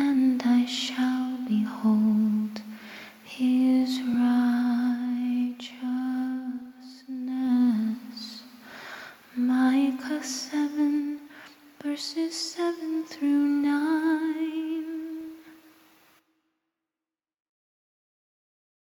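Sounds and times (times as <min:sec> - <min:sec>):
a cappella scripture singing: 0:00.0 - 0:08.6, 0:09.3 - 0:15.7.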